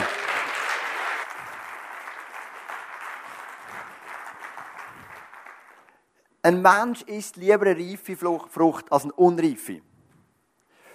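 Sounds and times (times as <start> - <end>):
audience applause for the speaker: 0.0 - 5.9
speech: 6.5 - 9.9.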